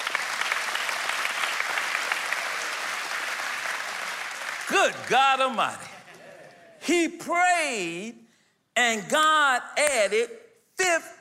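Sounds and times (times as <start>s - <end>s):
audience applause: 0.0s - 6.7s
speech: 4.7s - 5.9s, 6.8s - 8.2s, 8.8s - 11.1s.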